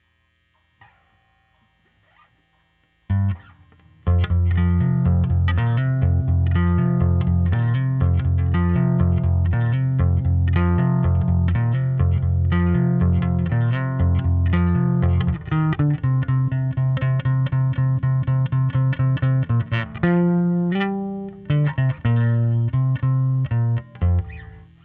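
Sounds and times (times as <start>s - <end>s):
overdriven bass: 2.9s - 24.8s.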